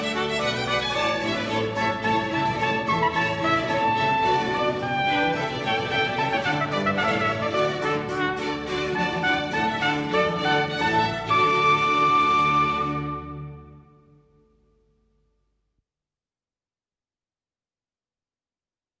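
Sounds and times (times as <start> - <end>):
trumpet concerto allegro: 0.0 - 13.9.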